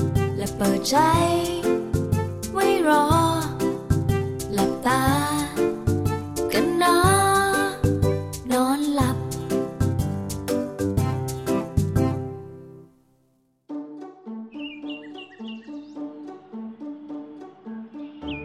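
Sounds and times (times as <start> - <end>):
plucked, tuneful music bed: 0.0 - 12.9, 13.7 - 18.4
morning birdsong: 14.5 - 16.2, 17.9 - 18.4.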